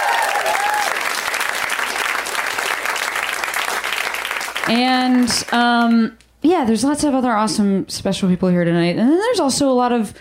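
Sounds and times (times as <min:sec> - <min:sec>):
audience applause at a live show: 0:00.0 - 0:05.5
speech: 0:04.7 - 0:10.2.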